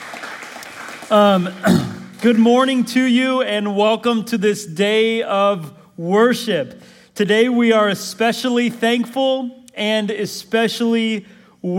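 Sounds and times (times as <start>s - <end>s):
audience applause: 0.0s - 2.3s
speech: 1.1s - 11.7s.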